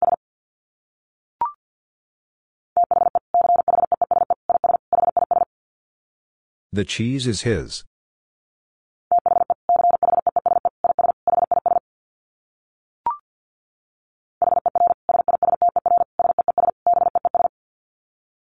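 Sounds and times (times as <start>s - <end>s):
Morse code tones at 50 words per minute: 2.8s - 5.4s, 9.1s - 11.8s, 14.4s - 17.5s
speech: 6.8s - 7.9s.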